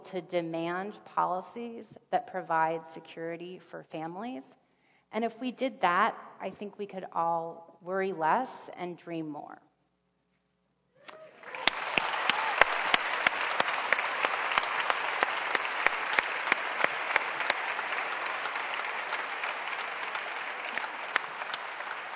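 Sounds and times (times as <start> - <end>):
speech: 0.1 - 9.7
audience applause: 11.3 - 22.1.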